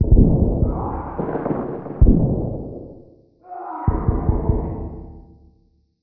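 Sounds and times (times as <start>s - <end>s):
distant fighting: 0.5s - 4.9s.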